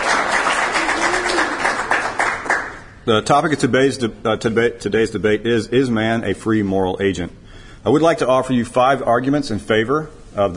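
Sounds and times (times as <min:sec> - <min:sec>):
round of applause at a debate: 0:00.0 - 0:03.0
speech: 0:03.1 - 0:10.5.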